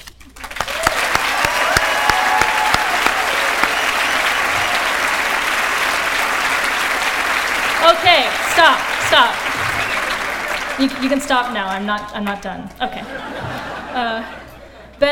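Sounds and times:
large audience applause: 0.3 - 14.0
laughter: 0.8 - 11.3, 12.8 - 15.0
speech: 8.1 - 9.4, 10.8 - 14.4, 15.0 - 15.1
whistle-like tone: 9.7 - 10.2.

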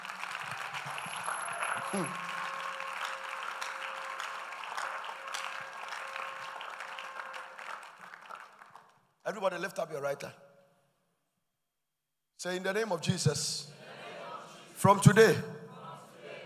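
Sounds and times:
audience clapping: 0.0 - 9.4
speech: 1.9 - 2.3, 9.3 - 10.4, 12.4 - 13.8, 14.8 - 15.5.

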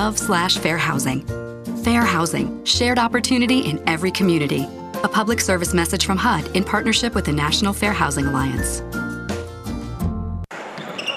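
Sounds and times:
speech: 0.0 - 9.0
busy high school basketball game soundscape: 10.5 - 11.1.

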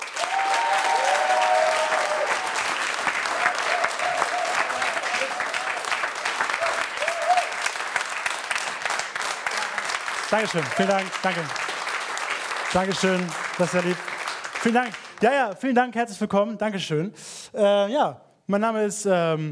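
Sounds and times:
audience applause: 0.0 - 15.4
speech: 10.3 - 11.7, 12.7 - 19.5.

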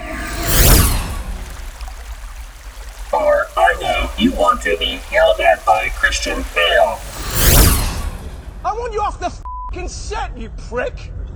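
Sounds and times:
open sea swell of water: 0.0 - 8.8
low rumble: 0.0 - 9.0
speech: 4.2 - 7.1, 8.8 - 11.2.

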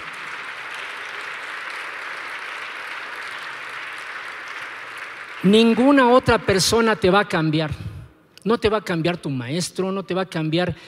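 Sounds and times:
crowd clapping: 0.0 - 7.4
speech: 5.4 - 10.8.

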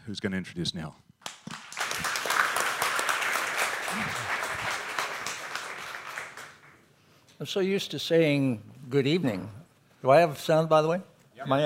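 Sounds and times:
speech: 0.1 - 1.1, 7.4 - 11.6
audience round of applause: 1.2 - 6.8.

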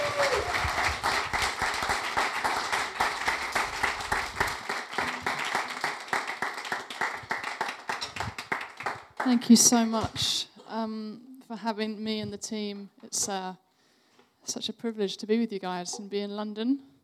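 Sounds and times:
audience applause: 0.0 - 9.4
speech: 9.3 - 13.6, 14.5 - 16.9.

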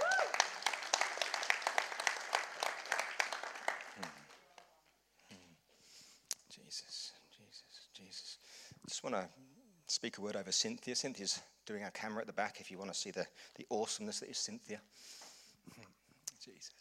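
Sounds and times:
crowd applause: 0.0 - 4.4
speech: 9.0 - 9.4, 10.0 - 15.8.

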